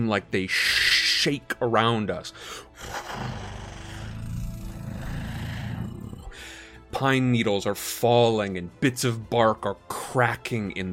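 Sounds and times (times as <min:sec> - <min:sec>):
speech: 0:00.0 - 0:03.4, 0:06.9 - 0:10.9
creature howling in the forest: 0:02.8 - 0:06.4.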